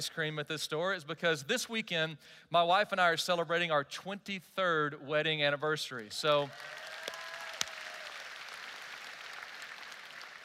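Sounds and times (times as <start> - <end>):
speech: 0.0 - 6.9
audience applause: 6.3 - 10.4.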